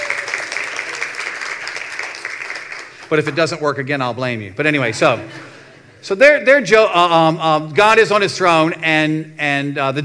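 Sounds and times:
audience applause for a guest: 0.0s - 3.3s
speech: 3.1s - 10.0s.

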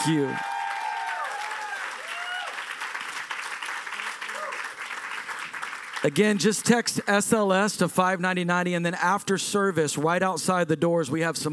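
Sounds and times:
speech: 0.0s - 0.5s, 6.0s - 11.5s
audience applauding: 0.0s - 6.6s.

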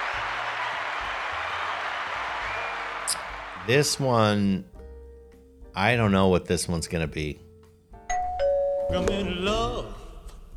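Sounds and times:
crowd applauding: 0.0s - 4.0s
speech: 3.1s - 4.7s, 5.8s - 7.4s, 8.9s - 10.0s.

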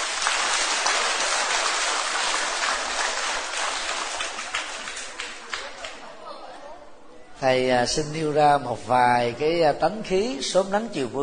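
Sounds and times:
applause: 0.0s - 6.0s
speech: 7.4s - 11.2s.

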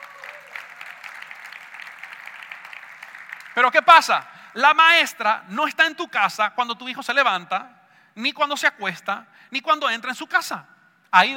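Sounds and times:
audience applause: 0.0s - 4.2s
speech: 3.6s - 11.3s.

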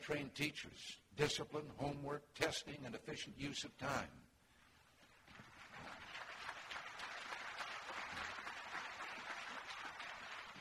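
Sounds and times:
speech: 0.0s - 4.2s
audience applause: 5.3s - 10.6s.

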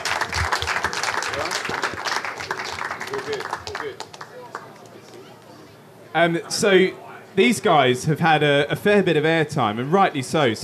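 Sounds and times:
crowd applauding: 0.0s - 4.9s
speech: 3.2s - 4.1s, 6.1s - 10.6s.

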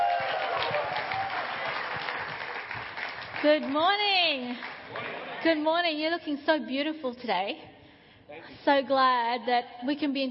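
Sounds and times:
audience applause for speaker coming on stage: 0.0s - 4.0s
speech: 3.4s - 7.7s, 8.6s - 10.2s.

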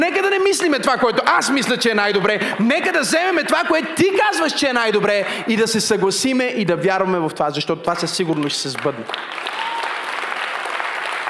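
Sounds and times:
speech: 0.0s - 9.5s
audience applause: 8.3s - 11.2s.

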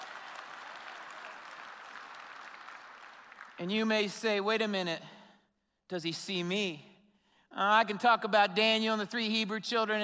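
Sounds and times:
audience applauding: 0.0s - 3.8s
speech: 3.6s - 5.1s, 5.9s - 6.9s, 7.5s - 10.0s.

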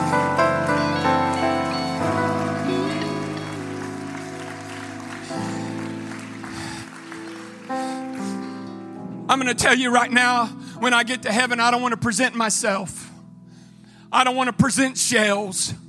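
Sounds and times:
people clapping hands: 0.0s - 9.0s
speech: 9.3s - 13.1s, 14.1s - 15.8s.

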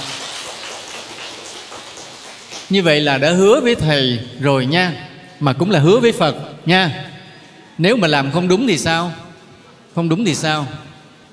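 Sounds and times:
audience applause: 0.0s - 2.7s
speech: 2.7s - 7.1s, 7.8s - 9.2s, 10.0s - 10.8s.

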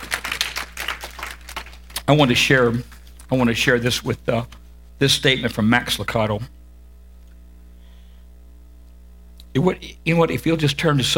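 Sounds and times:
audience clapping hands: 0.0s - 2.8s
speech: 2.1s - 6.6s, 9.6s - 11.1s.

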